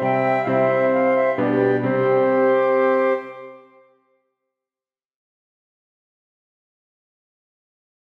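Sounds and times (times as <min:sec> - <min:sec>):
piano: 0:00.0 - 0:04.0
two flutes: 0:00.0 - 0:04.1.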